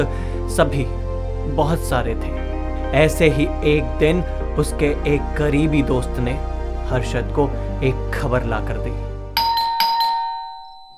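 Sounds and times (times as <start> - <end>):
speech: 0.0 - 9.1
doorbell ringing: 9.4 - 10.9.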